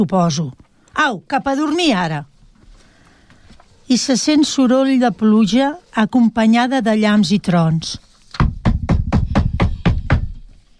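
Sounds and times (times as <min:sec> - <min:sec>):
speech: 0:00.0 - 0:02.3, 0:03.9 - 0:08.1
knocking on a door: 0:08.4 - 0:10.5.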